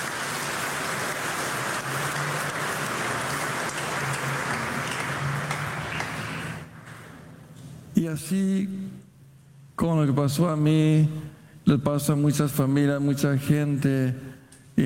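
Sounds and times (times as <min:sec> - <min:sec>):
audience applauding: 0:00.0 - 0:06.8
speech: 0:08.0 - 0:08.8, 0:09.8 - 0:14.8.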